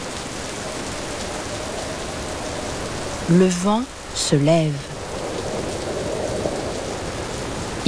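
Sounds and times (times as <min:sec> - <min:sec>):
large raindrops pattering on a surface: 0:00.0 - 0:07.8
speech: 0:03.3 - 0:05.0.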